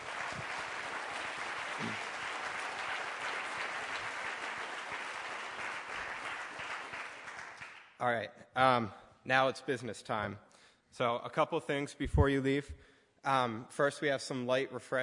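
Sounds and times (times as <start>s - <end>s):
audience applause: 0.0s - 7.9s
speech: 8.0s - 15.0s.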